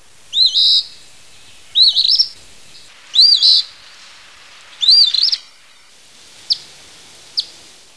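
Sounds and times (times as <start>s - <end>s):
Say's phoebe whistled calls: 0.3s - 4.1s, 4.7s - 6.7s, 7.3s - 7.6s.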